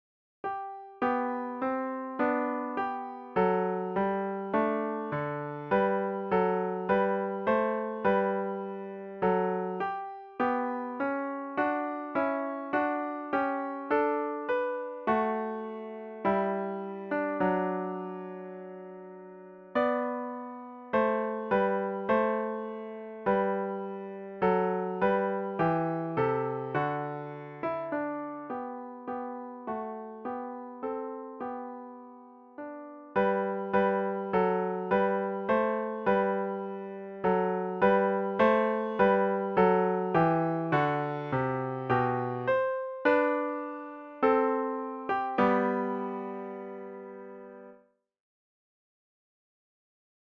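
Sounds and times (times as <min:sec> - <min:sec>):
solo piano: 0:00.4 - 0:48.0.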